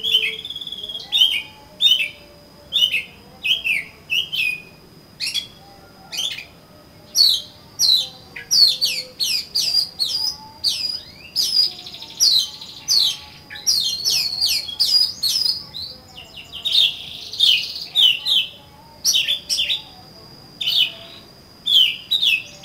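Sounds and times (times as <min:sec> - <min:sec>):
Oriental magpie-robin song: 0:00.0 - 0:20.0, 0:20.6 - 0:22.6.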